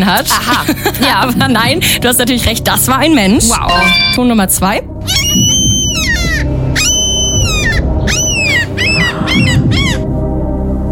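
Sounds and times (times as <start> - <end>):
speech: 0.0 - 5.5
seagull calls: 5.0 - 10.1.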